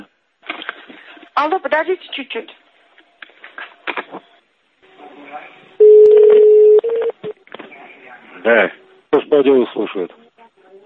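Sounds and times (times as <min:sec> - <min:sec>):
speech: 0:01.4 - 0:02.6, 0:08.4 - 0:10.2
telephone dialing tones as a call is connected: 0:05.8 - 0:07.2.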